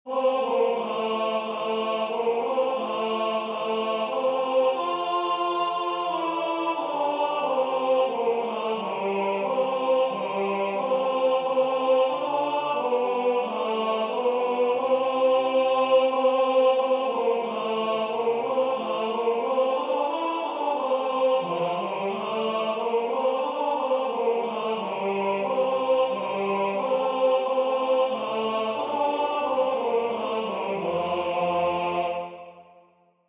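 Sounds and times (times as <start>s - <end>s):
tenor singing: 0.1s - 32.6s.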